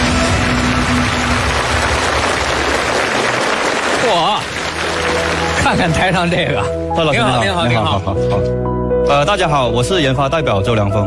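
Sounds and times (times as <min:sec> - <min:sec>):
applause welcoming a speaker: 0:00.0 - 0:06.3
speech: 0:05.7 - 0:11.0.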